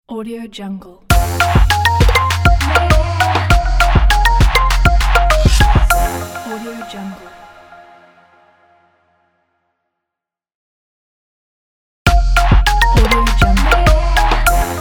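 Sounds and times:
fresh trap music opener: 0:01.1 - 0:08.1, 0:12.1 - 0:14.7.

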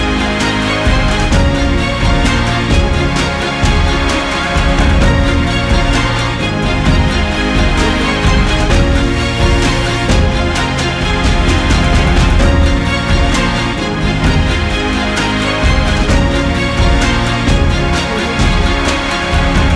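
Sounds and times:
epic background music: 0:00.0 - 0:19.7.

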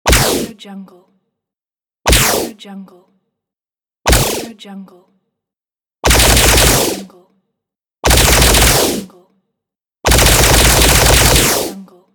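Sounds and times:
laser gun: 0:00.1 - 0:00.5, 0:02.1 - 0:02.5, 0:04.1 - 0:04.5, 0:06.0 - 0:07.1, 0:08.1 - 0:09.1, 0:10.1 - 0:11.8.

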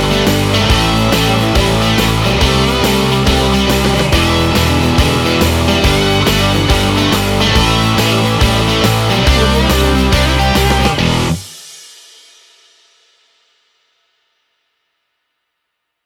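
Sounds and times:
energetic indie rock: 0:00.0 - 0:11.5.

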